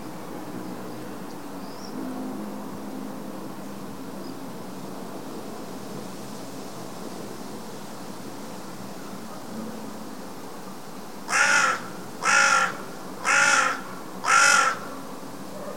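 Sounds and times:
carrion crow Corvus corone cawing: 11.3 - 15.0.

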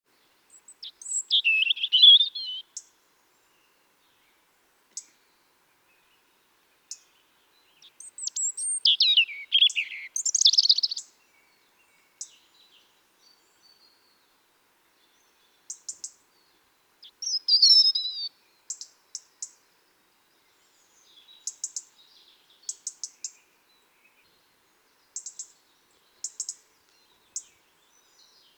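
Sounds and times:
European robin singing: 0.1 - 28.5.

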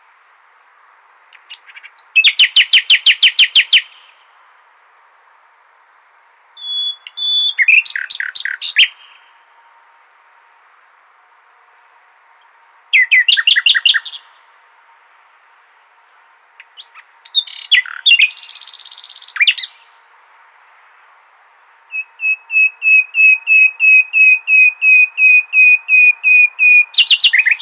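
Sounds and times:
common nightingale song: 1.3 - 4.3, 6.6 - 9.7, 11.3 - 14.5, 16.6 - 20.2, 21.9 - 27.6.

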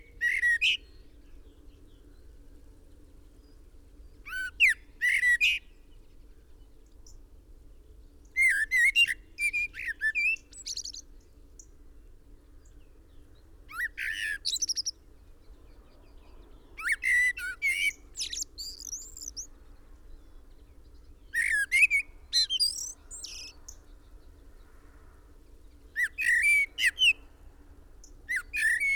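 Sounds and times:
common blackbird singing: 0.0 - 2.3, 4.2 - 6.2, 8.3 - 11.7, 12.6 - 24.6, 25.7 - 27.3, 28.0 - 28.9.

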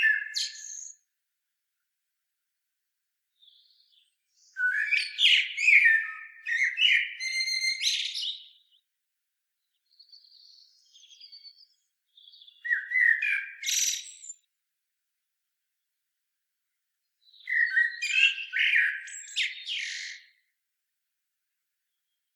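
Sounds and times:
common blackbird singing: 0.0 - 1.2, 3.3 - 14.6, 16.8 - 20.6, 21.7 - 22.3.

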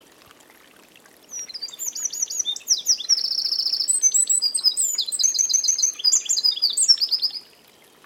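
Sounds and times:
Eurasian wren singing shrill notes and trills: 1.3 - 7.4.

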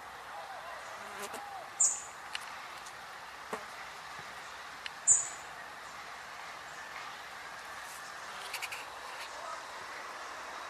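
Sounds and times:
background hiss: 0.0 - 10.6
European robin high calls: 0.4 - 2.2, 5.0 - 5.5.

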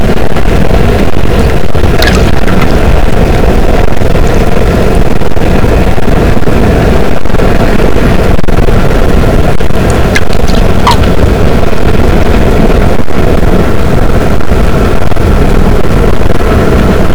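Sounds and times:
boat engine rumble: 0.0 - 17.1
sperm whale clicks: 9.9 - 11.2.

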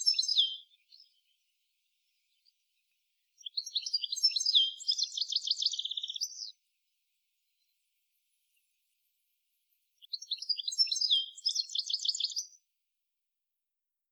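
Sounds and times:
European goldfinch Carduelis carduelis tinkling twittering calls: 0.0 - 12.6.

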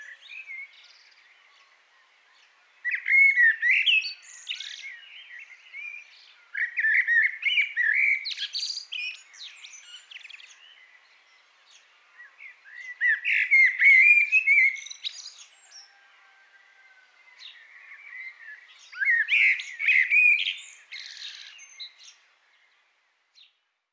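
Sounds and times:
common blackbird singing: 2.4 - 16.1, 17.2 - 22.2.

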